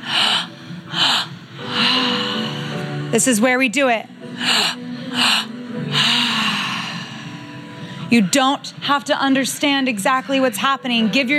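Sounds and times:
deep belly breathing in a breathwork session: 0:00.0 - 0:03.1, 0:04.3 - 0:08.3
speech: 0:03.1 - 0:05.5, 0:08.1 - 0:11.3.

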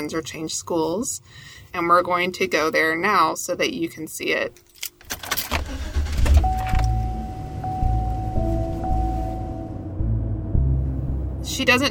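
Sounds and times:
speech: 0:00.0 - 0:04.7, 0:11.6 - 0:11.8
car engine rumbling while setting off through a residential neighborhood: 0:05.0 - 0:11.8.

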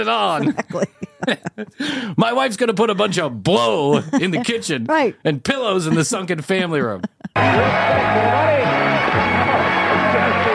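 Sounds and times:
laughter: 0:00.0 - 0:04.8, 0:09.0 - 0:10.5
speech: 0:00.0 - 0:09.6
audience members cheering and clapping: 0:07.4 - 0:10.5.

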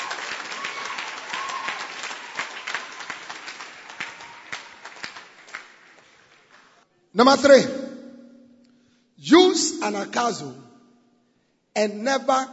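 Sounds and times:
audience clapping: 0:00.0 - 0:06.9
speech: 0:07.1 - 0:07.8, 0:09.9 - 0:10.7, 0:11.8 - 0:12.5.

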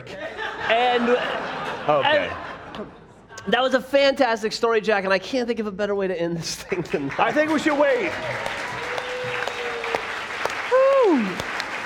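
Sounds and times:
laughter: 0:00.0 - 0:03.5
speech: 0:00.0 - 0:09.4
applause: 0:06.6 - 0:11.8.

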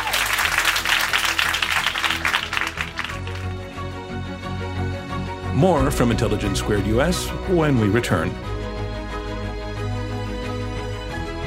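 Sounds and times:
audience applause at a live debate event: 0:00.0 - 0:04.0
steady tonal music: 0:00.0 - 0:11.4
speech: 0:05.6 - 0:08.5.

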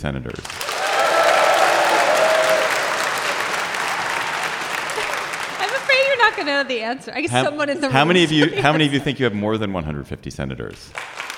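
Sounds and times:
speech: 0:00.0 - 0:00.8, 0:06.3 - 0:11.1
crowd clapping: 0:00.4 - 0:07.0, 0:10.9 - 0:11.3
laughter: 0:03.5 - 0:09.4.

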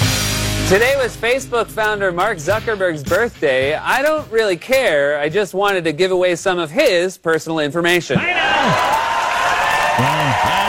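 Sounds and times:
speech: 0:00.7 - 0:09.0
enthusiastic crowd cheering and clapping: 0:08.2 - 0:10.6
people shouting: 0:08.2 - 0:10.6.

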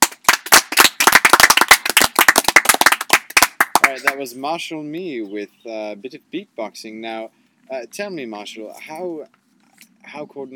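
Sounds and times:
audience clapping: 0:00.0 - 0:04.2
speech: 0:03.9 - 0:09.4, 0:10.1 - 0:10.5.

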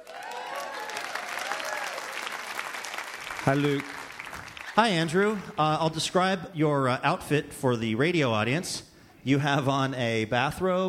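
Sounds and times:
whooping cheers: 0:00.0 - 0:02.4
studio audience clapping welcoming a guest: 0:00.0 - 0:05.2
speech: 0:03.4 - 0:04.0, 0:04.8 - 0:10.8.

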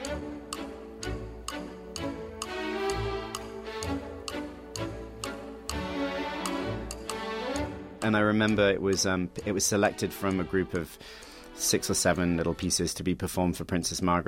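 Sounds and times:
ticking woodblock clock rhythm: 0:00.0 - 0:12.9
orchestral music: 0:00.0 - 0:13.6
speech: 0:08.1 - 0:14.2.

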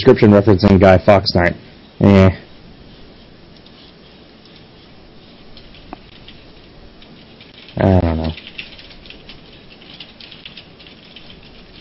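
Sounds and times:
speech: 0:00.0 - 0:02.4, 0:07.8 - 0:08.0
typing on a keyboard: 0:05.5 - 0:11.8.

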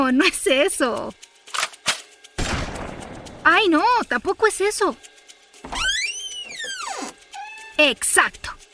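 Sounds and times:
speech: 0:00.1 - 0:01.2, 0:03.5 - 0:05.1, 0:07.8 - 0:08.5
door creaking: 0:05.6 - 0:07.9.

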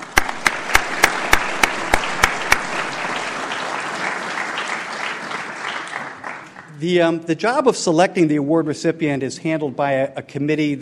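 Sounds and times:
audience round of applause: 0:00.0 - 0:06.8
speech: 0:06.8 - 0:10.7.

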